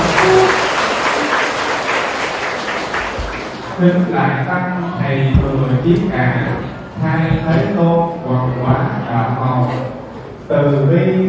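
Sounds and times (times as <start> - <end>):
assembly at a Buddhist gathering applauding a visiting monk: 0.0 - 3.8
speech: 3.8 - 11.2.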